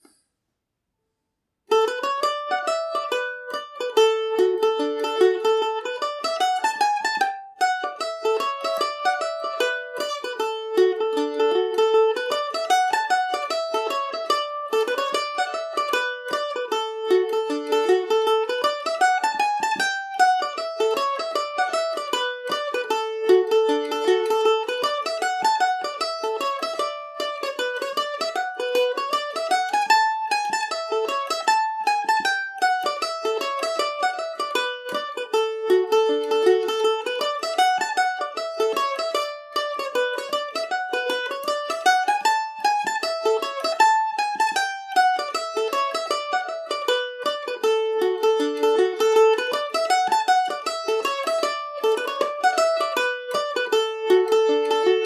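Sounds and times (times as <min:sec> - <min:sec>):
mandolin tune in D major: 0:01.7 - 0:55.0.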